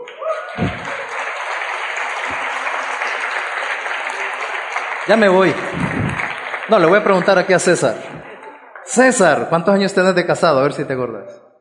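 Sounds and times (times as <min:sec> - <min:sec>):
audience applause: 0:00.0 - 0:09.0
low thumps: 0:00.6 - 0:01.0
speech: 0:05.1 - 0:08.3, 0:08.9 - 0:11.4.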